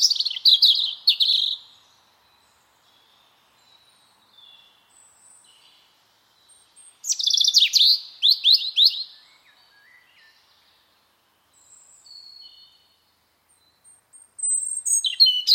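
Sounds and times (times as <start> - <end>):
bird singing twittering phrases with whistles and trills: 0.0 - 15.5.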